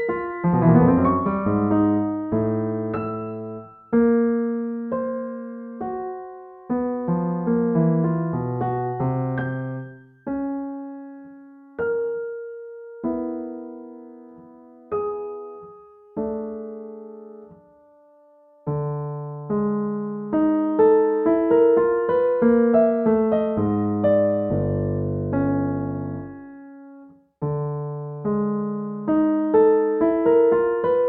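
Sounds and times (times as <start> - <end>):
piano: 0.0 - 31.0.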